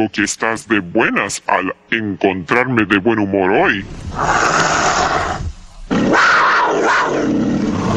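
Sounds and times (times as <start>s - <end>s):
speech: 0.0s - 4.7s
leopard growling: 4.0s - 7.9s.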